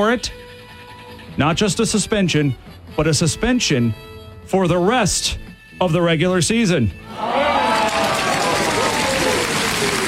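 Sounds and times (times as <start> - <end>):
speech: 0.0 - 0.4, 1.4 - 7.4
studio audience cheering: 7.1 - 10.0.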